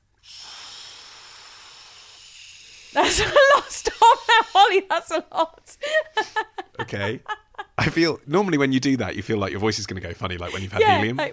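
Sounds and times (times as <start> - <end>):
breath-activated nasal spray device hiss: 0.2 - 4.7
speech: 2.9 - 11.3
laughter: 3.0 - 4.9, 5.8 - 8.0, 10.5 - 11.3.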